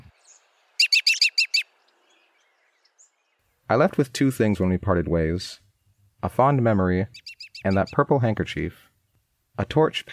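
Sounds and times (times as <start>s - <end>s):
American robin chirping: 0.0s - 3.4s, 7.0s - 8.1s
speech: 3.7s - 5.6s, 6.2s - 8.9s, 9.6s - 10.1s.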